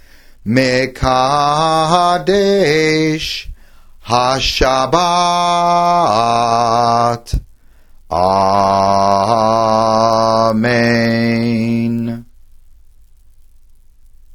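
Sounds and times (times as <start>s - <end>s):
person chanting a blessing: 0.5s - 7.4s, 8.1s - 12.3s.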